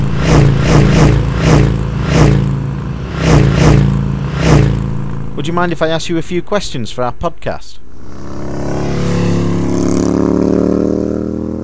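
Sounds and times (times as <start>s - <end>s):
motorcycles racing at an island road-race event: 0.0s - 5.2s, 7.9s - 11.6s
speech: 5.4s - 8.5s.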